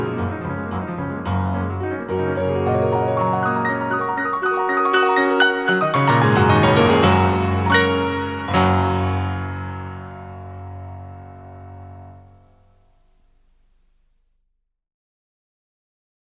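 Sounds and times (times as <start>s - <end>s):
fast instrumental piano piece: 0.0s - 12.6s.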